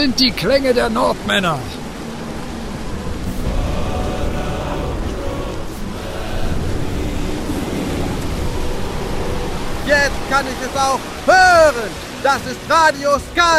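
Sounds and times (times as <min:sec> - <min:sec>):
speech: 0:00.0 - 0:01.8, 0:09.9 - 0:13.5
storm wind at sea: 0:00.0 - 0:13.4
waves at sea: 0:00.0 - 0:13.5.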